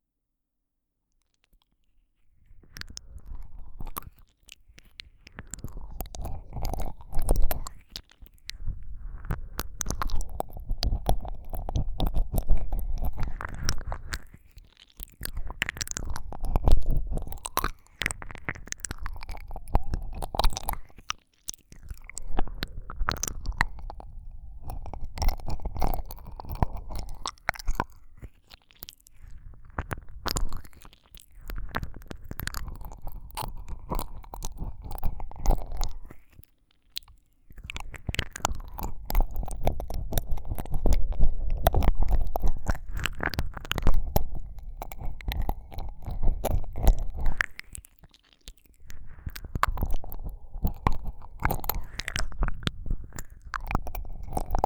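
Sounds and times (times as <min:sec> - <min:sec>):
ASMR ear licking: 0:02.6 - 0:54.6.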